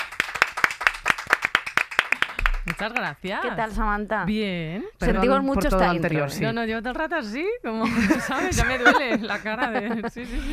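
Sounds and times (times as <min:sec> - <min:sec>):
audience applause on a Spanish-language comedy show: 0:00.0 - 0:02.8
speech: 0:02.6 - 0:10.5
laughter: 0:07.8 - 0:10.5.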